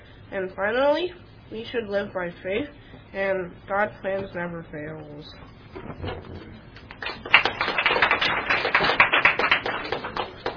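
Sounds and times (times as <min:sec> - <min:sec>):
speech: 0:00.3 - 0:06.6
audience applause: 0:06.9 - 0:10.5.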